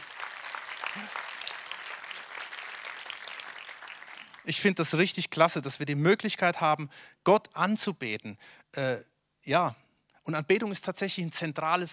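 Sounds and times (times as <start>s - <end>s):
audience applause: 0.0s - 4.6s
speech: 1.0s - 1.3s, 4.4s - 11.9s.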